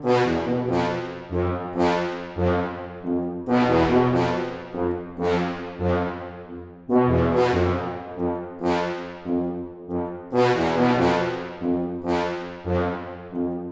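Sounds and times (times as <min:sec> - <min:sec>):
tuba: 0:00.0 - 0:13.7.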